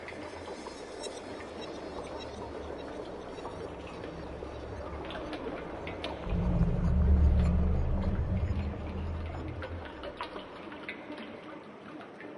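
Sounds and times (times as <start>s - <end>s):
sewer ambience: 3.0s - 10.4s.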